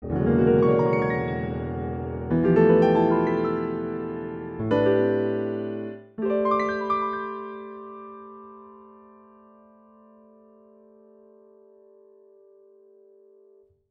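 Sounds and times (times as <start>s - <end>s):
piano: 0.0s - 13.8s.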